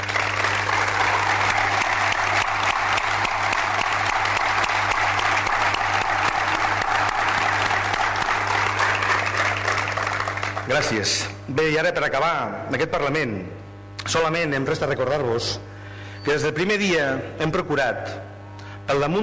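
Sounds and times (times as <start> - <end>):
audience applause: 0.0 - 11.1
speech: 10.9 - 18.3, 18.9 - 19.2.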